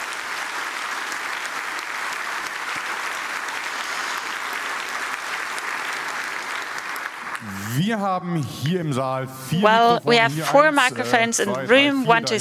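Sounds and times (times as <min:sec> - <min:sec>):
audience applause: 0:00.0 - 0:07.8
speech: 0:07.8 - 0:12.3.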